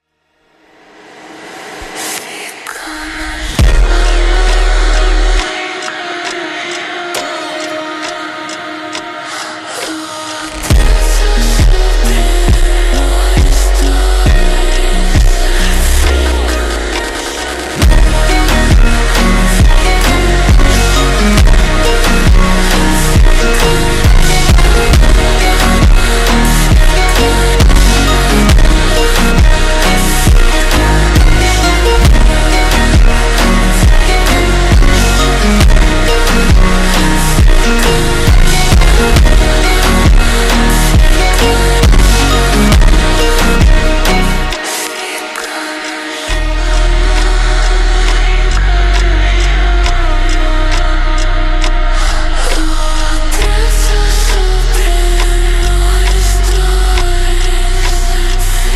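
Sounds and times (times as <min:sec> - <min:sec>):
slowed funk music: 0:03.0 - 0:58.7.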